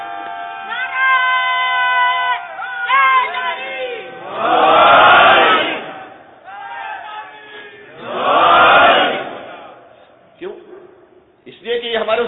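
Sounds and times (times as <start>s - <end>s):
loud surging crowd shout: 0.0s - 10.0s
crowd at a religious gathering chanting a slogan: 3.1s - 10.2s.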